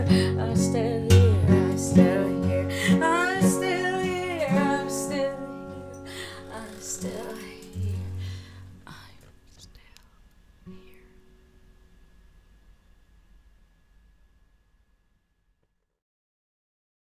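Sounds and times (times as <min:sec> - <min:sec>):
acoustic music: 0:00.0 - 0:12.4.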